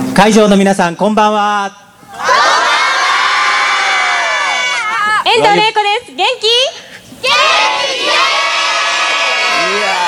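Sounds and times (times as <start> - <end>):
speech: 0.2 - 2.5, 5.2 - 8.4
large crowd shouting in response: 2.1 - 5.2, 7.2 - 10.0.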